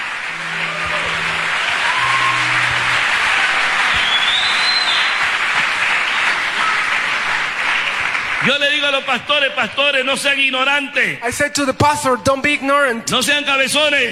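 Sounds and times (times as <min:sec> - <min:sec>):
faint tonal sounds: 0:00.0 - 0:04.2
church congregation applauding: 0:00.0 - 0:11.2
speech: 0:08.4 - 0:14.1.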